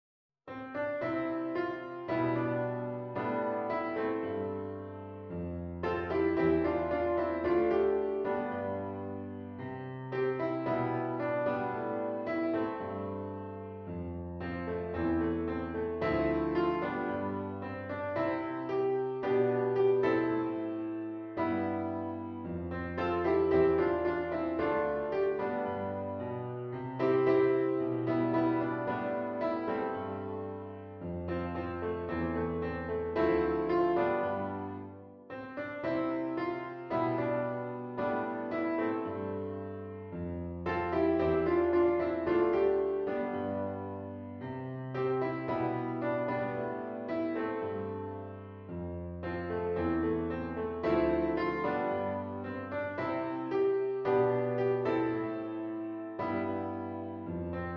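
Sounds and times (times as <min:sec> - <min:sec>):
full piano chords: 0:00.5 - 0:57.7.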